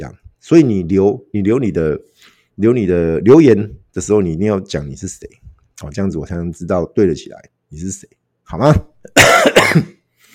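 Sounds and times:
speech: 0:00.0 - 0:10.0
person coughing: 0:09.1 - 0:10.1.

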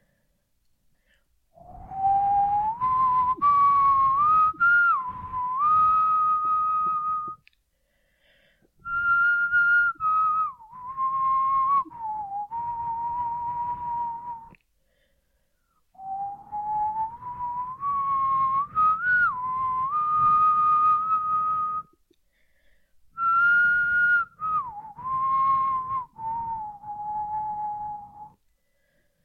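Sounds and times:
person whistling a slow song melody: 0:01.6 - 0:07.5, 0:08.8 - 0:14.6, 0:15.9 - 0:22.0, 0:23.2 - 0:28.4.

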